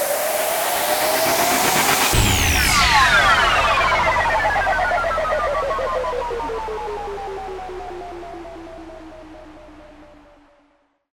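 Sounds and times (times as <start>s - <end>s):
electron burst rise and impact: 0.1s - 8.8s.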